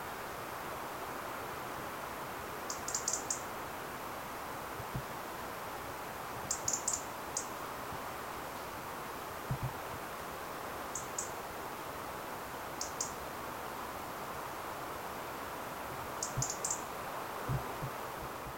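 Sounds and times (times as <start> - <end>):
steady hiss: 0.0 - 18.5
European robin tick notes: 2.7 - 3.5, 6.5 - 7.5, 10.9 - 11.4, 12.8 - 13.2, 16.1 - 16.9.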